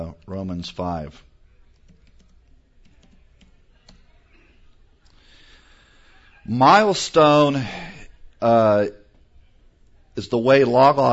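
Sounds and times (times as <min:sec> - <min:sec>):
speech: 0:00.0 - 0:01.3, 0:06.4 - 0:09.0, 0:10.2 - 0:11.1
low hiss: 0:00.0 - 0:11.1
typing on a computer keyboard in Logos Bible software: 0:01.6 - 0:04.1.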